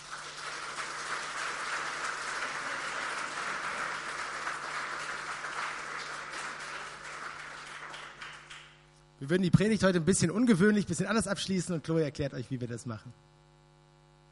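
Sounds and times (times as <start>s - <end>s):
audience applause: 0.0s - 8.8s
speech: 9.2s - 13.3s.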